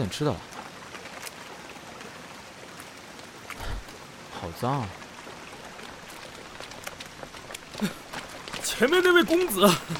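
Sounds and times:
speech: 0:00.0 - 0:00.5, 0:04.4 - 0:05.0, 0:07.8 - 0:08.0, 0:08.8 - 0:09.9
steady rain in dense even hiss: 0:00.0 - 0:09.9
scattered bright raindrop taps: 0:05.6 - 0:09.9.

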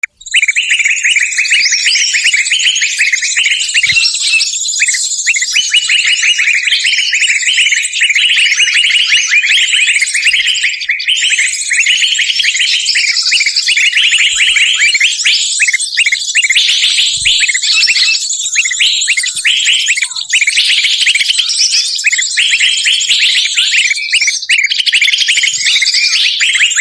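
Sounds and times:
birds chirping and trilling: 0:00.0 - 0:26.7.

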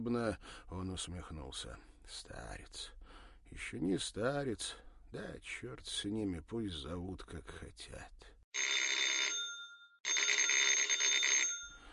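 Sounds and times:
speech: 0:00.0 - 0:09.0
rattling telephone bell ringing: 0:08.6 - 0:11.9.

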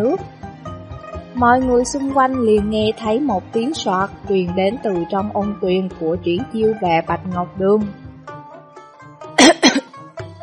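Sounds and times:
speech: 0:00.0 - 0:00.3, 0:01.4 - 0:08.0
man giving dry coughs in a hot spring pool: 0:09.4 - 0:09.9.

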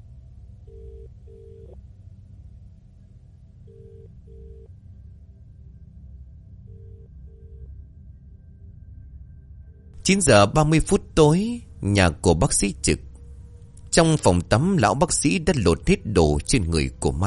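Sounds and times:
phone call ringing unanswered: 0:00.7 - 0:01.8
speech: 0:10.1 - 0:13.1, 0:13.9 - 0:17.2.

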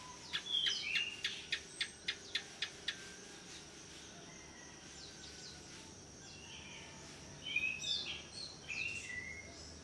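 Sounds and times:
long-singing kalitan type canary in full song: 0:00.0 - 0:03.7, 0:06.2 - 0:09.8.

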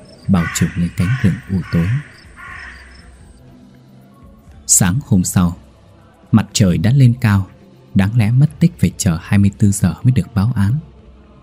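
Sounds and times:
crow cawing: 0:00.0 - 0:03.3
speech: 0:00.3 - 0:02.2, 0:04.8 - 0:05.6, 0:06.3 - 0:10.9.

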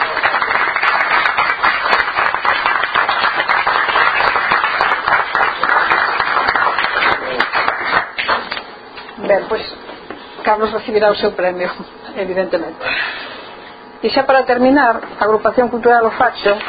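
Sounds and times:
audience applause: 0:00.0 - 0:08.6
speech: 0:10.5 - 0:13.2, 0:14.0 - 0:16.6.

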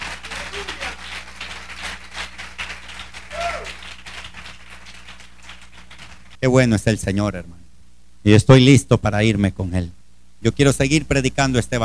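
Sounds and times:
audience applauding: 0:00.0 - 0:06.4
speech: 0:06.4 - 0:07.6, 0:08.2 - 0:11.8.

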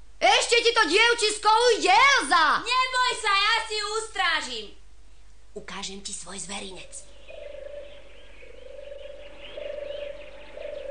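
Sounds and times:
speech: 0:00.6 - 0:04.8, 0:05.6 - 0:07.1
pigeons cooing: 0:07.1 - 0:10.9.

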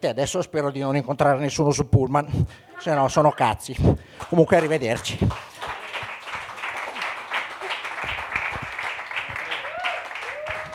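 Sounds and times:
speech: 0:00.0 - 0:05.5
audience applause: 0:04.2 - 0:10.7.

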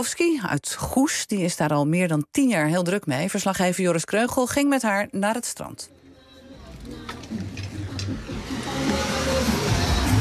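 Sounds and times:
speech: 0:00.0 - 0:06.0
car driving past: 0:05.9 - 0:10.1.

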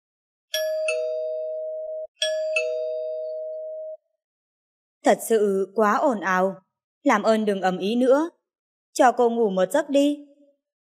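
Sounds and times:
two-tone doorbell ringing: 0:00.6 - 0:04.0
speech: 0:05.1 - 0:08.4, 0:09.0 - 0:10.3.

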